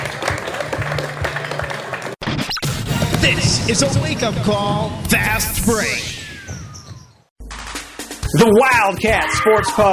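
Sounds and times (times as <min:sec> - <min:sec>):
round of applause: 0:00.0 - 0:02.2
speech: 0:03.3 - 0:06.1, 0:08.4 - 0:09.9.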